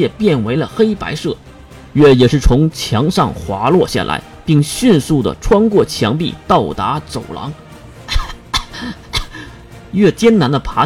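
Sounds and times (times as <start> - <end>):
speech: 0.0 - 7.6, 9.9 - 10.8
coughing: 8.1 - 9.6.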